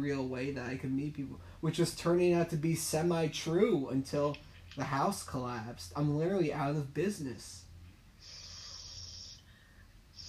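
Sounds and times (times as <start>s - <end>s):
speech: 0.0s - 7.6s
nasal spray snorted up the nose from a neti pot: 8.2s - 9.6s.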